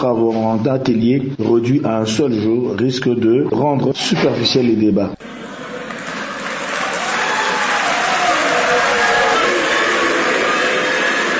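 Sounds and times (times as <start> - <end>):
speech: 0.0 - 5.5
political party activists and students applauding: 5.2 - 11.3.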